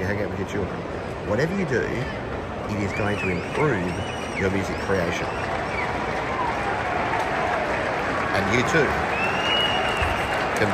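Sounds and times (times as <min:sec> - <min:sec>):
speech: 0:00.1 - 0:05.5, 0:08.4 - 0:09.1
crowd applauding: 0:03.2 - 0:10.7.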